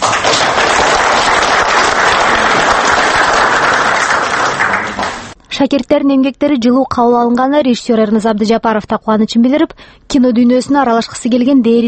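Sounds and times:
audience applause at a screening of student-made films: 0.0s - 5.4s
speech: 5.6s - 11.8s.

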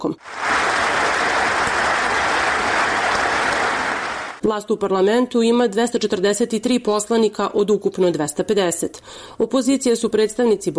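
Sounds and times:
speech: 0.0s - 0.5s, 4.5s - 10.7s
applause from members of parliament of the ruling majority: 0.2s - 4.4s.

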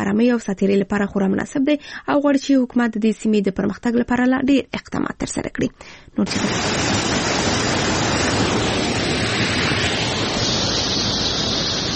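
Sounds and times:
speech: 0.0s - 7.4s
cold clear water rushing at the Mazar Baba spring: 6.3s - 11.9s.

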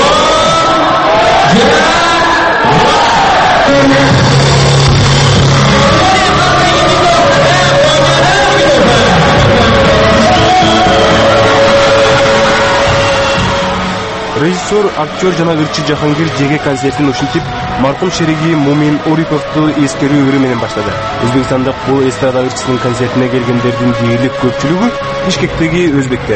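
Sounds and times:
concert audience shouts and whoops: 0.0s - 4.8s, 5.7s - 14.3s
concert audience clapping in a hall in Bishkek: 5.5s - 17.4s
speech: 14.4s - 26.3s.

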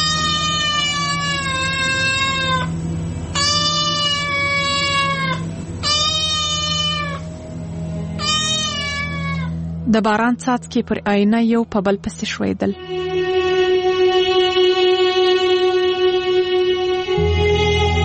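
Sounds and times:
cat meowing at a window: 0.0s - 2.7s, 3.4s - 7.3s, 8.2s - 9.6s
low steady hum: 0.0s - 18.0s
speech: 9.9s - 13.0s.

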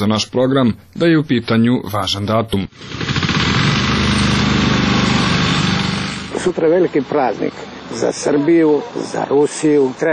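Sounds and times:
speech: 0.0s - 3.5s, 6.4s - 10.1s
lawn mower cutting grass: 2.8s - 10.1s.

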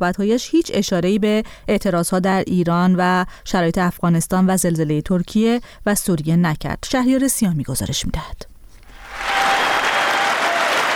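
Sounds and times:
speech: 0.0s - 8.5s
Members of Congress applauding US President Joe Biden before the State of the Union address: 9.0s - 10.9s.

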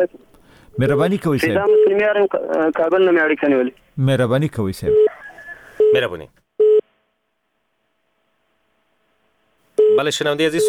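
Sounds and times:
speech: 0.0s - 5.1s, 5.9s - 6.4s, 10.0s - 10.6s
telephone beep as a call to a radio call-in line cuts off: 1.6s - 2.0s, 9.8s - 10.0s.

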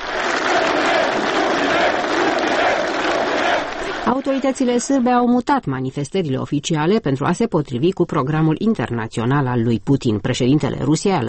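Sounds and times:
crowd chanting a leader's name: 0.0s - 5.0s
speech: 4.1s - 11.2s.

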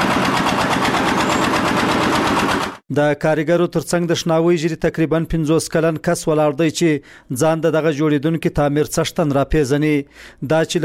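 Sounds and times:
machine lifting bricks on a cold building site: 0.0s - 2.8s
speech: 2.9s - 10.8s.

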